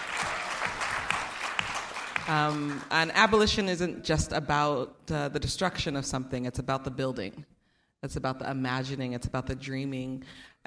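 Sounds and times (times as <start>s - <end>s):
panel audience applauding: 0.0s - 2.9s
speech: 2.3s - 10.6s.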